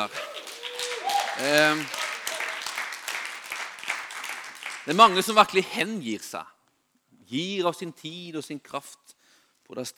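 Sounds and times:
speech: 0.0s - 0.2s, 1.4s - 2.0s, 4.8s - 6.5s, 7.3s - 9.9s
audience applause: 0.0s - 5.4s.

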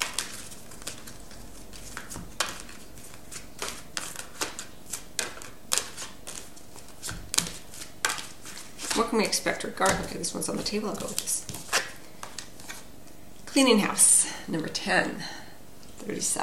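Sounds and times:
oracle-style reading deck cards tapping and flicking as drawn: 0.0s - 9.1s, 9.8s - 12.8s
speech: 9.1s - 11.4s, 13.6s - 15.4s, 16.0s - 16.4s.

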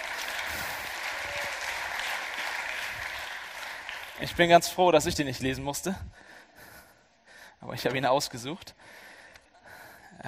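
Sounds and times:
audience applause: 0.0s - 4.4s
speech: 4.2s - 6.4s, 7.6s - 9.1s.

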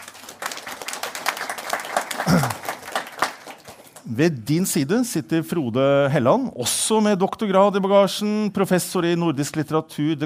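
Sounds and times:
audience clapping: 0.0s - 4.2s
speech: 2.2s - 2.6s, 4.1s - 10.2s.

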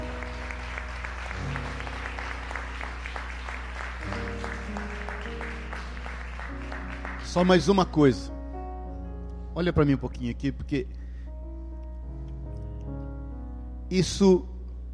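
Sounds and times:
audience clapping: 0.0s - 8.0s
sustained organ or keyboard chords: 0.0s - 14.9s
speech: 7.4s - 8.3s, 9.6s - 11.0s, 13.9s - 14.5s.

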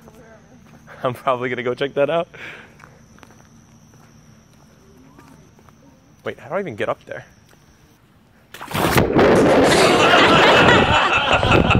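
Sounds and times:
speech: 1.0s - 2.7s, 6.3s - 7.4s
man falling into a pond with a splash: 8.5s - 10.6s
laughter: 9.7s - 11.7s.

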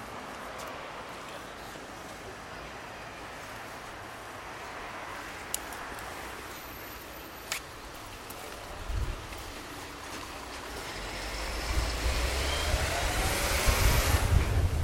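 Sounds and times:
passing traffic in Margate: 0.0s - 14.8s
steady wash of outdoor noise in Margate: 0.0s - 14.8s
low rumbling gusts: 10.8s - 14.8s.

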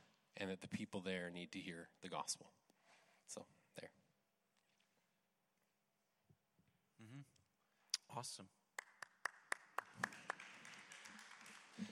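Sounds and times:
speech: 0.4s - 2.6s, 3.3s - 4.0s, 7.0s - 7.4s, 8.1s - 8.6s
audience clapping: 8.8s - 11.9s.

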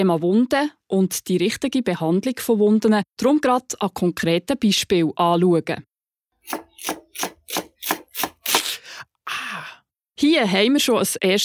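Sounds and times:
speech: 0.0s - 5.9s, 6.5s - 7.7s, 10.2s - 11.4s
knife chopping onions or other vegetables on a board: 6.4s - 8.7s.

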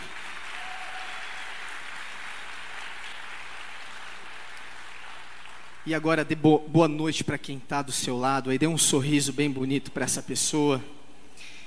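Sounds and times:
audience clapping loudly: 0.0s - 6.0s
speech: 5.8s - 11.5s.

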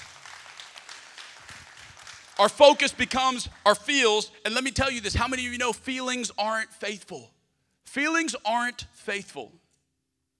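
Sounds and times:
audience clapping: 0.0s - 4.1s
speech: 2.4s - 9.6s.

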